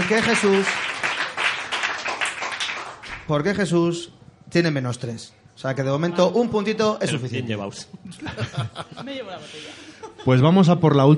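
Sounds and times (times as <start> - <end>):
audience applause: 0.0 - 3.3
speech: 0.1 - 0.9, 3.3 - 11.1
laughter: 8.0 - 10.4.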